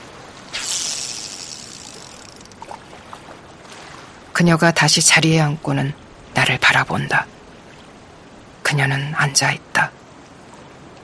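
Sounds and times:
fishing bait splashing into water: 0.4s - 3.9s
speech: 4.4s - 7.4s, 8.7s - 10.0s.

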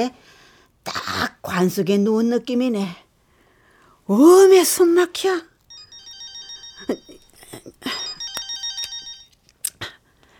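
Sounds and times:
speech: 0.0s - 3.0s, 4.1s - 5.5s, 6.9s - 8.0s
telephone ringing: 5.7s - 9.4s.

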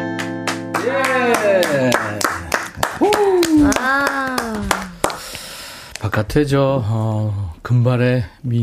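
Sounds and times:
people clapping: 0.1s - 6.2s
speech: 6.3s - 8.6s.

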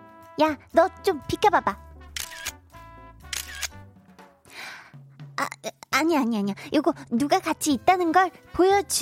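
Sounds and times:
steady tonal music: 0.0s - 8.9s
speech: 0.4s - 1.9s, 5.6s - 8.9s
camera shutter clicks: 2.2s - 2.6s, 3.3s - 3.8s.

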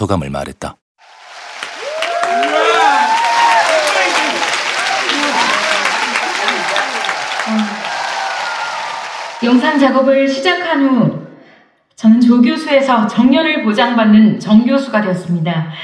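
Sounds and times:
speech: 0.0s - 0.8s, 9.4s - 11.2s, 12.0s - 15.8s
audience applauding at awards ceremony: 1.0s - 10.1s.

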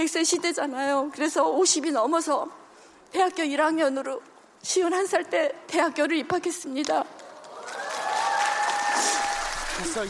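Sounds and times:
speech: 0.0s - 7.2s, 9.8s - 10.0s
audience clapping: 7.2s - 10.0s.

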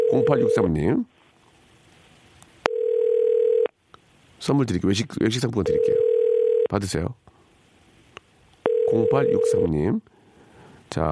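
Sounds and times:
speech: 0.1s - 1.1s, 4.4s - 6.0s, 6.7s - 7.3s, 8.9s - 10.2s, 10.9s - 11.1s
telephone dial tone: 2.7s - 3.7s, 5.7s - 6.7s, 8.7s - 9.6s.

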